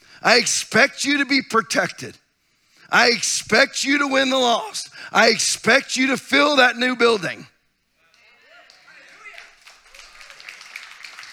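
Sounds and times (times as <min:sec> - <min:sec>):
speech: 0:00.2 - 0:02.2, 0:02.9 - 0:07.5
audience applause: 0:08.6 - 0:11.3.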